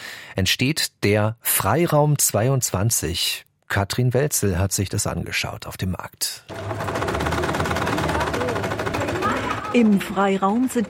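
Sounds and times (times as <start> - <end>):
speech: 0.4 - 7.0, 9.7 - 10.8
sewing machines running: 6.5 - 10.8.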